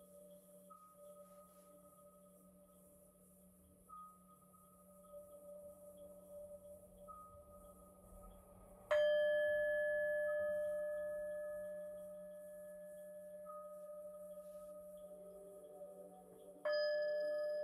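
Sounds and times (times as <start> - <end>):
singing bowl humming: 0.0 - 17.6
singing bowl strike: 8.9 - 17.6.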